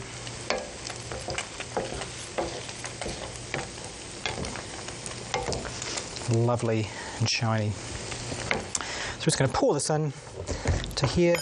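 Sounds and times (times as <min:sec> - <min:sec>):
stirring ragu sauce in a pan: 0:00.2 - 0:06.4, 0:07.9 - 0:08.8
speech: 0:06.3 - 0:08.0, 0:09.2 - 0:11.4.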